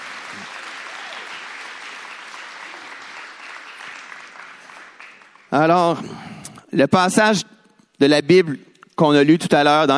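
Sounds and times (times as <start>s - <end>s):
audience applauding: 0.0s - 5.9s
speech: 5.6s - 9.9s.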